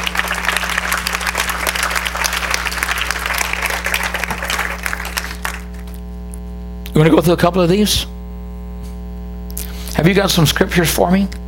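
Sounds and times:
audience hand clapping: 0.0 - 6.0
speech: 7.0 - 8.1, 10.0 - 11.4.

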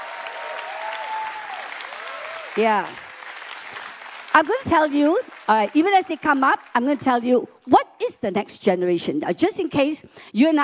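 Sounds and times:
audience applause: 0.0 - 6.9
speech: 2.6 - 3.0, 4.4 - 10.6.

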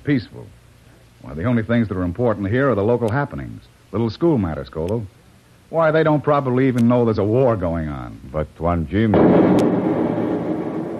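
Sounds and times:
speech: 0.0 - 0.6, 1.2 - 9.9
explosion inside a building: 9.1 - 10.9.

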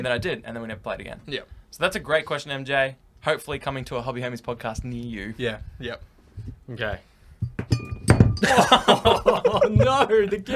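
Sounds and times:
speech: 0.0 - 7.1, 8.4 - 10.5
things tumbling and clattering: 7.4 - 10.0
table knocked over: 7.6 - 9.1
laughter: 8.4 - 10.5.

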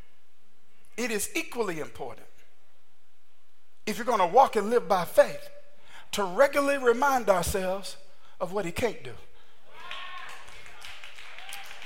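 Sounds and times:
speech: 1.0 - 2.4, 3.9 - 9.3
hand claps: 9.9 - 11.8.

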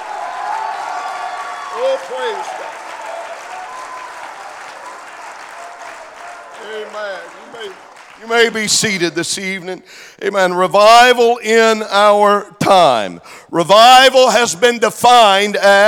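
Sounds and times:
audience shouting: 0.0 - 8.0
audience clapping: 0.0 - 9.2
speech: 1.8 - 2.8, 6.7 - 15.8.

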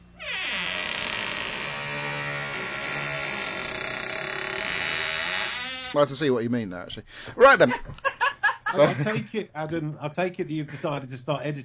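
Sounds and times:
creaking door: 0.0 - 6.0
speech: 5.9 - 8.1, 8.7 - 11.6
laughter: 7.4 - 9.5.

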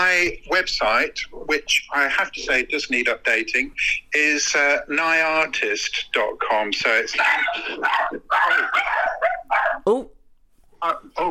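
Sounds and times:
speech: 0.2 - 9.0, 10.8 - 11.2
dog barking: 7.2 - 9.9.

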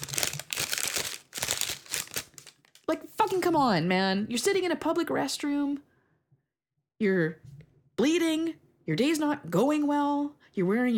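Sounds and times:
period pad wrapper being opened in a public restroom: 0.0 - 3.5
speech: 2.9 - 5.9, 7.0 - 10.9.

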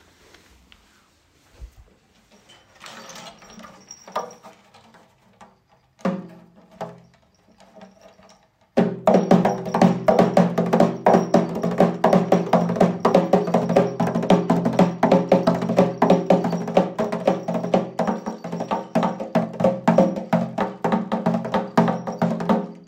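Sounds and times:
two-skinned triangular frame drum playing: 8.8 - 22.8.

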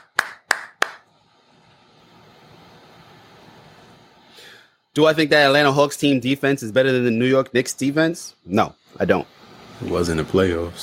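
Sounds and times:
hand claps: 0.0 - 1.1
speech: 5.0 - 10.8.

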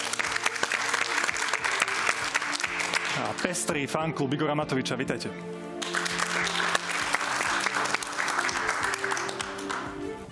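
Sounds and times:
studio audience of supporters applauding at a televised political debate: 0.0 - 3.7, 5.8 - 10.2
speech: 3.2 - 5.6.

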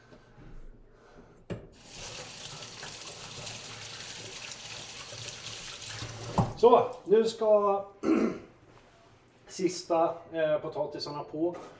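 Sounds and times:
hands rinsed under running tap: 1.8 - 7.1
speech: 6.6 - 8.2, 9.6 - 11.7.

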